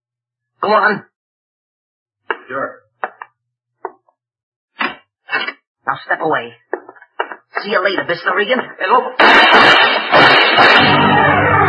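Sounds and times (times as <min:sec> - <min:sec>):
speech: 0:00.6 - 0:01.1, 0:02.5 - 0:02.8, 0:05.9 - 0:06.6, 0:07.6 - 0:11.6
gunshots: 0:09.2 - 0:11.6.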